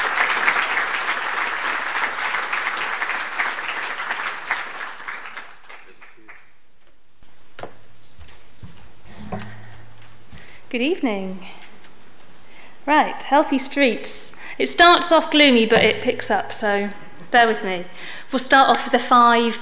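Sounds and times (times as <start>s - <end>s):
audience applause at a Healthy Streets evening talk in Auckland: 0.0s - 6.6s
speech: 10.8s - 11.6s, 12.8s - 19.5s.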